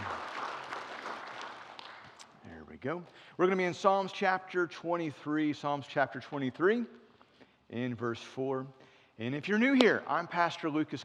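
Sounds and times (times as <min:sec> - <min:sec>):
audience applause: 0:00.0 - 0:02.2
speech: 0:02.8 - 0:07.0, 0:07.7 - 0:11.0.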